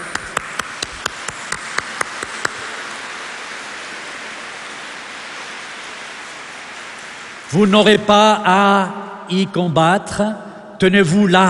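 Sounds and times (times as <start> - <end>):
audience applause: 0.0 - 7.8
speech: 7.5 - 11.4.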